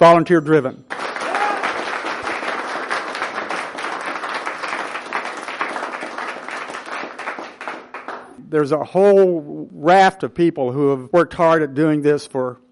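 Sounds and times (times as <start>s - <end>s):
speech: 0.0s - 1.0s, 8.5s - 12.6s
audience applause: 0.9s - 8.3s.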